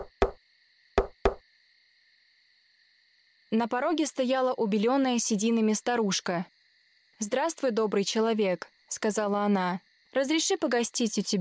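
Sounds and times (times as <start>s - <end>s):
knocking on a house door: 0.0s - 0.4s, 1.0s - 1.4s
speech: 3.5s - 6.5s, 7.2s - 11.3s.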